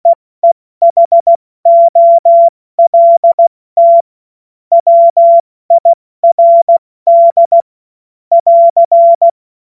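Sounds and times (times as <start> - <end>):
CW Morse code beeps: 0.4 - 4.0, 4.7 - 7.7, 8.3 - 9.4.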